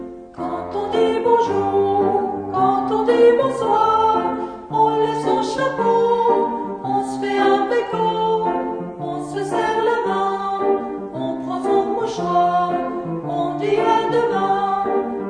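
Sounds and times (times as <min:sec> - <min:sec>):
person singing: 0:00.4 - 0:15.2.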